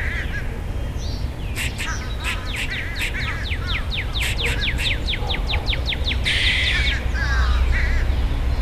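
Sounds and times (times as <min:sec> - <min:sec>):
squirrel calling in high descending chirps: 0:00.0 - 0:08.6.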